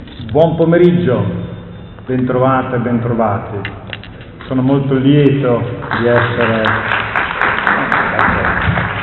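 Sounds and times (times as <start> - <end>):
speech: 0.3 - 1.4, 2.1 - 3.9, 4.5 - 7.0
crowd applause: 5.8 - 9.0.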